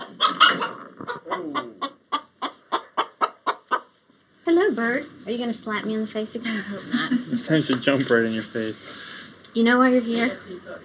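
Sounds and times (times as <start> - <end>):
large chicken clucking: 0.0 - 4.1
speech: 4.8 - 10.8
laughter: 6.5 - 7.6.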